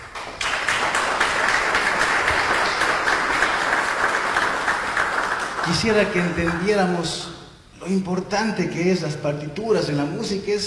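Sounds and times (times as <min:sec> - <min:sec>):
audience applause: 0:00.0 - 0:07.0
speech: 0:05.7 - 0:10.6.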